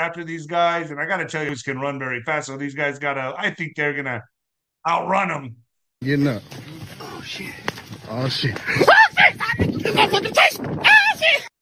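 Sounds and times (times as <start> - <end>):
speech: 0.0 - 9.0
laughter: 8.2 - 10.6
man screaming: 8.7 - 11.6.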